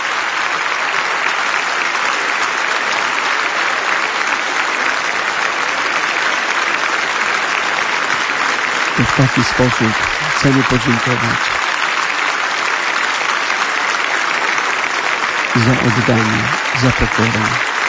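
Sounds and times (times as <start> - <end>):
large crowd applause: 0.0 - 17.8
speech: 9.2 - 11.6, 15.6 - 17.7.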